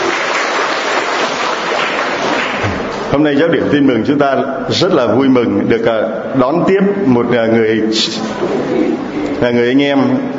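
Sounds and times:
audience applause welcoming a fellow brother: 0:00.0 - 0:03.0
speech: 0:03.1 - 0:10.3.

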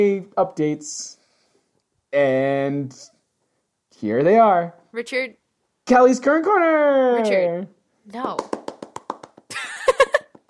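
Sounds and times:
speech: 0:00.0 - 0:01.2, 0:02.1 - 0:03.1, 0:04.0 - 0:08.6
hands clapping: 0:08.2 - 0:10.4.

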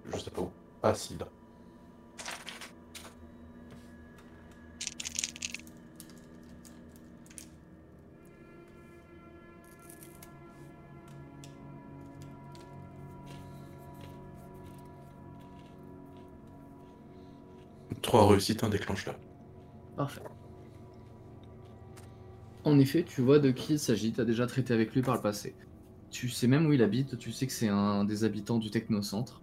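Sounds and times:
low steady hum: 0:00.0 - 0:29.4
speech: 0:00.8 - 0:01.4, 0:18.1 - 0:19.4, 0:20.0 - 0:20.4, 0:22.7 - 0:29.4
tabletop role-playing dice rattling: 0:04.8 - 0:07.5.

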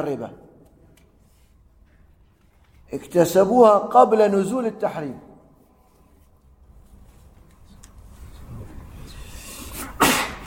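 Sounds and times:
speech: 0:00.0 - 0:00.4, 0:02.9 - 0:05.3
person sneezing: 0:09.6 - 0:10.4.

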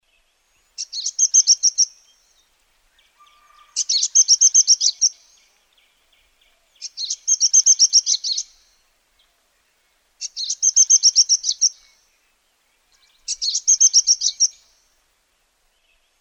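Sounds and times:
bird singing high chirps: 0:00.8 - 0:02.4, 0:03.1 - 0:05.5, 0:06.8 - 0:08.8, 0:10.2 - 0:12.1, 0:12.9 - 0:14.8.

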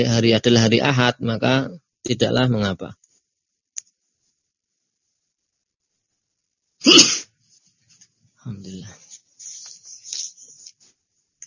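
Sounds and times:
speech: 0:00.0 - 0:03.0
sneeze: 0:06.8 - 0:07.3.

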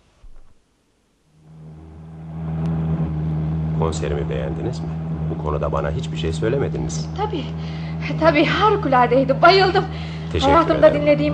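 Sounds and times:
car engine cranking and starting: 0:01.4 - 0:11.3
speech: 0:03.8 - 0:11.3.

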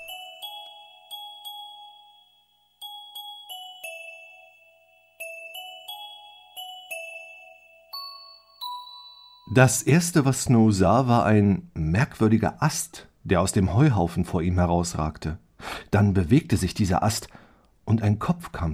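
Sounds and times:
confused jingling of bells: 0:00.0 - 0:10.3
speech: 0:09.5 - 0:18.7.

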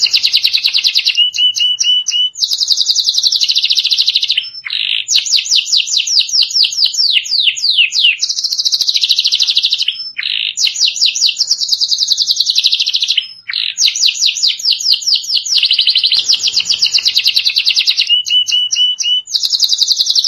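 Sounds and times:
canary singing: 0:00.0 - 0:20.2.

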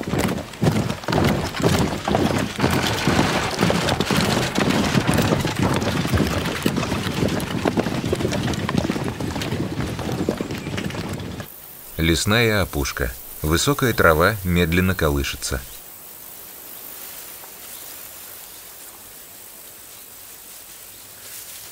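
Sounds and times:
soldiers in formation marching in boots: 0:00.0 - 0:15.8
speech: 0:12.1 - 0:15.7.

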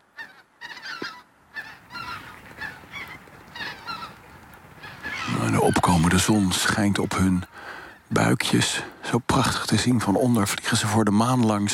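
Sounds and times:
large groups of geese honking overhead in the early morning: 0:00.0 - 0:08.2
speech: 0:05.5 - 0:07.5, 0:08.1 - 0:11.7.

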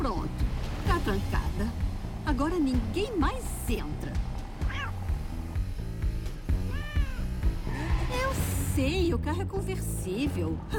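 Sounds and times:
steady rhythmic music with pulsing low beat: 0:00.0 - 0:08.7
speech: 0:01.0 - 0:01.4, 0:02.4 - 0:04.3, 0:08.8 - 0:10.7
cat meowing: 0:04.6 - 0:05.1, 0:06.6 - 0:07.4.

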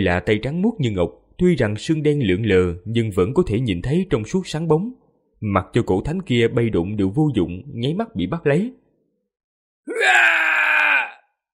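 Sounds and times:
speech: 0:00.0 - 0:08.8, 0:09.8 - 0:10.4
man screaming in agony: 0:09.9 - 0:11.4.

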